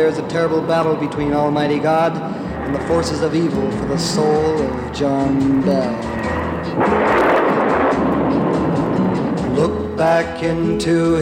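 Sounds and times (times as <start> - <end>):
speech: 0.0 - 7.0, 9.6 - 11.1
thunder rolling down the valleys: 6.6 - 9.5.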